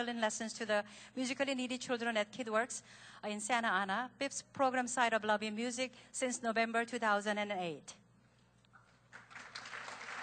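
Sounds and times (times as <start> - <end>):
speech: 0.0 - 8.0
audience applause: 9.1 - 10.2.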